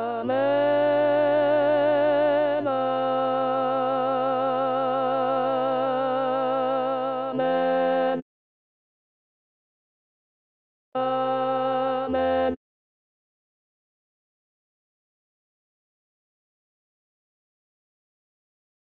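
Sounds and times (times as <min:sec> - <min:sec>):
contralto voices singing liturgical music: 0:00.0 - 0:08.2, 0:11.0 - 0:12.6.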